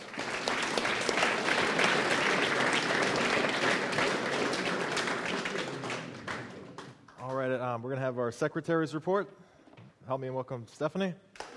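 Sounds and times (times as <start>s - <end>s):
audience applause thanking a speaker at a meeting: 0.0s - 7.5s
speech: 8.1s - 9.5s, 10.1s - 11.3s.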